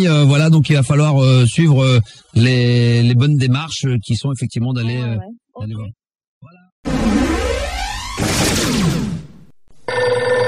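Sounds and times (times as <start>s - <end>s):
speech: 0.0s - 7.4s, 8.2s - 9.0s
telephone ringing: 9.9s - 10.4s.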